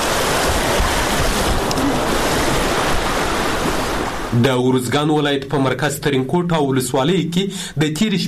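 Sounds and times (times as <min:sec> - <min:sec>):
rushing floodwater after heavy overnight rain in Uruzgan province, Afghanistan: 0:00.0 - 0:05.0
speech: 0:04.4 - 0:08.2.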